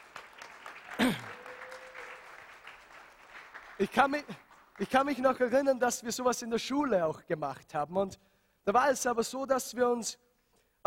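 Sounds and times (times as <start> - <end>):
audience applause: 0.0 - 5.2
speech: 3.8 - 10.2.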